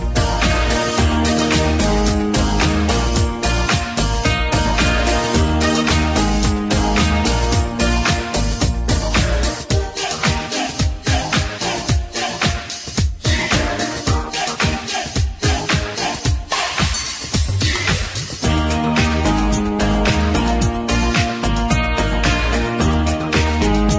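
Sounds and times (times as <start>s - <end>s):
forest party background music: 0.0s - 23.9s.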